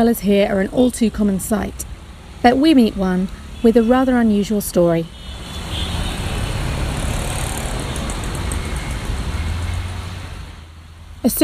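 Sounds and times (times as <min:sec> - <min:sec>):
speech: 0:00.0 - 0:05.2, 0:11.2 - 0:11.4
speeding cars: 0:00.2 - 0:11.4
vehicle horns in Chennai city traffic: 0:02.8 - 0:10.2.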